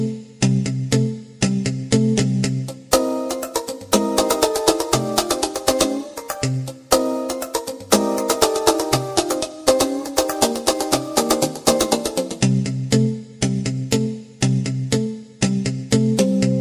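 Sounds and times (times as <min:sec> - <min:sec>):
clean jazz guitar: 0:00.0 - 0:16.5.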